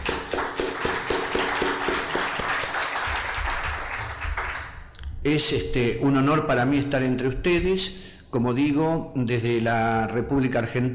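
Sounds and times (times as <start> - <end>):
audience applause: 0.0 - 4.8
speech: 5.2 - 10.9.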